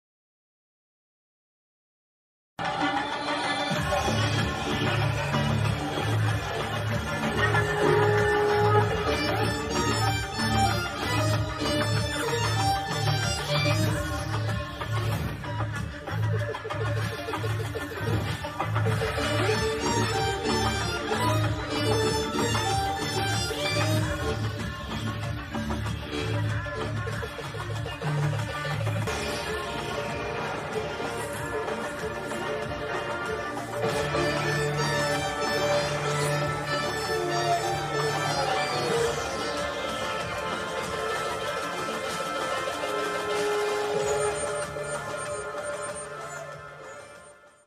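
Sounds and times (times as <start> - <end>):
interval background music: 2.6 - 47.6.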